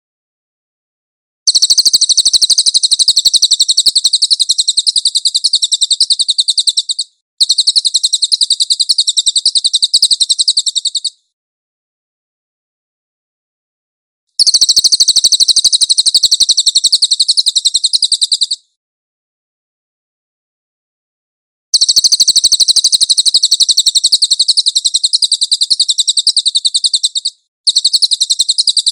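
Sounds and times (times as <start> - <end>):
cililin chattering trills: 1.5 - 11.2, 14.4 - 18.6, 21.8 - 28.9.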